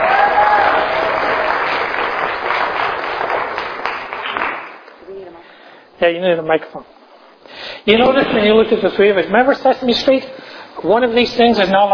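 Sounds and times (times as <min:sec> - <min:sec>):
crowd applause: 0:00.0 - 0:04.9
speech: 0:06.0 - 0:11.9.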